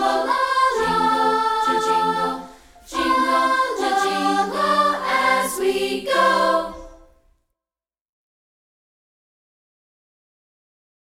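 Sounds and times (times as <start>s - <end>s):
a cappella singing: 0.0s - 7.0s.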